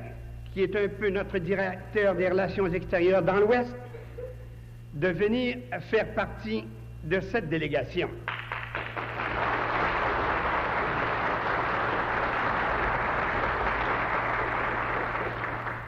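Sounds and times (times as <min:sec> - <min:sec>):
speech: 0:00.5 - 0:03.9, 0:05.0 - 0:08.3
audience applause: 0:08.3 - 0:15.8.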